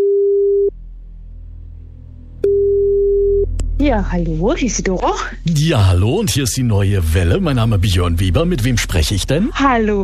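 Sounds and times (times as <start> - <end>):
faint low hum: 0.0 - 10.0
telephone ringback tone: 2.4 - 3.4
speech: 3.8 - 10.0.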